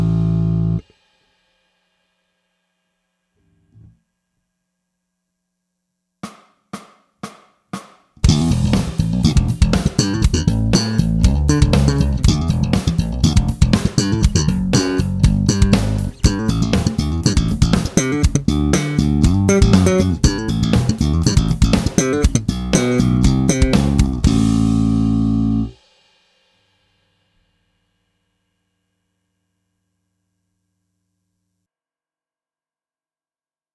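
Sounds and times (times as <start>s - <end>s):
slap speed exercise: 6.2s - 25.7s.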